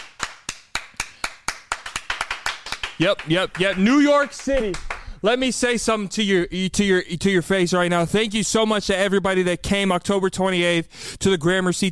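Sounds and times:
sharp hand claps: 0.0 - 5.2
speech: 3.0 - 11.8.

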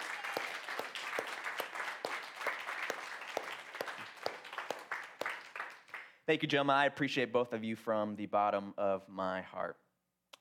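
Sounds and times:
church audience applauding: 0.0 - 6.2
speech: 6.3 - 9.8.

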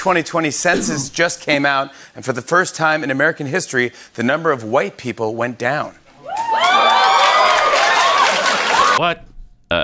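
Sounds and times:
speech: 0.0 - 6.0, 9.0 - 9.8
studio audience cheering: 6.2 - 9.0.

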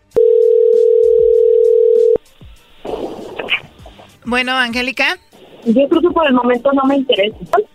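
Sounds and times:
telephone dial tone on a line being redialed after a dropped call: 0.2 - 2.2
speech: 4.3 - 7.6.

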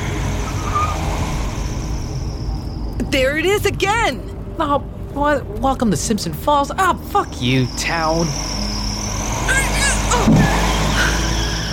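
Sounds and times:
car driving fast on a road: 0.0 - 2.7, 7.5 - 11.7
speech: 3.0 - 8.7.

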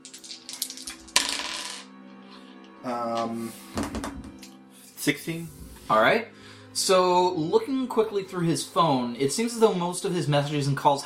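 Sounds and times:
dice clattering and tumbling across a hard surface: 0.0 - 1.9
speech: 2.8 - 4.1, 5.0 - 11.0.

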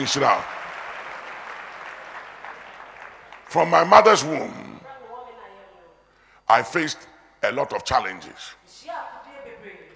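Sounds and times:
speech: 0.0 - 0.6, 3.5 - 4.7, 6.5 - 9.1
audience clapping: 0.0 - 3.7.

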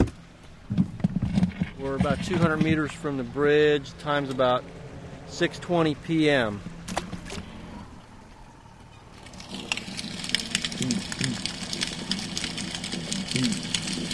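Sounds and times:
low steady motor-like hum: 0.0 - 14.1
speech: 1.8 - 6.7
snapping shrimp crackling underwater: 9.2 - 14.1.

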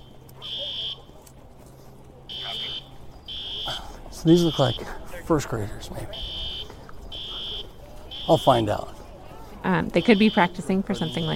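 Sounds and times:
school evacuation drill alarm blaring: 0.0 - 1.0, 2.3 - 5.0, 6.1 - 8.8, 9.9 - 11.3
faint murmur: 0.0 - 11.3
speech: 4.2 - 6.3, 8.3 - 9.0, 9.6 - 11.3.

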